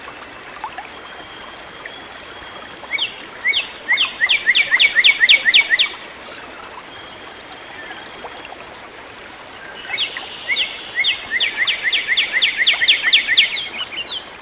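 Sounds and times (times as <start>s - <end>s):
bird song with rising whistles and dry trill: 1.0s - 6.0s, 9.6s - 14.3s.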